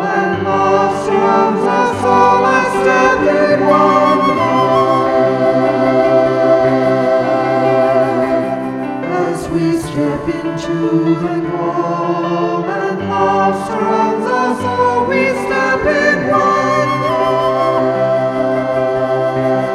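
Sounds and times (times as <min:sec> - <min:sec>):
SATB choir singing: 0:00.0 - 0:19.7
flute: 0:00.0 - 0:19.7
piano: 0:00.0 - 0:19.7.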